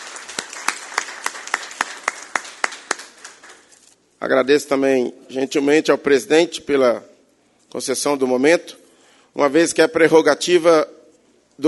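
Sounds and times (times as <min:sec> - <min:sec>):
applause in a council chamber: 0:00.0 - 0:03.9
speech: 0:04.2 - 0:07.1, 0:07.7 - 0:08.8, 0:09.4 - 0:11.0.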